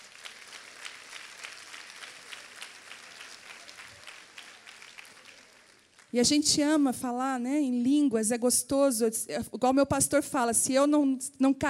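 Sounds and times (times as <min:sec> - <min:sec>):
audience applauding: 0:00.0 - 0:06.2
speech: 0:06.1 - 0:11.6.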